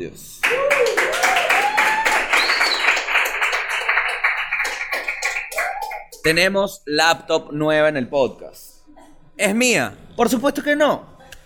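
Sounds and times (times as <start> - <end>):
speech: 0.0 - 0.7, 6.2 - 8.7, 9.4 - 11.1
audience applause: 0.4 - 6.2
voices cheering and calling out: 0.4 - 6.2.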